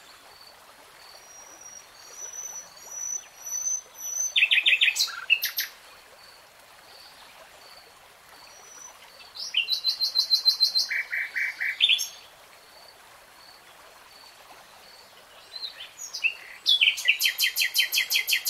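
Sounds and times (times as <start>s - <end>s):
nightingale song: 1.1s - 5.8s, 8.5s - 12.3s, 15.4s - 18.4s.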